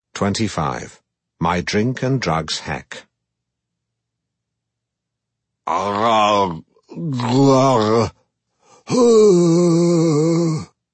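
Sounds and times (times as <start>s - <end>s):
speech: 0.2s - 3.1s, 5.6s - 8.2s, 8.9s - 10.7s
man making grunting and bark-like groans: 5.7s - 8.2s, 8.8s - 10.8s.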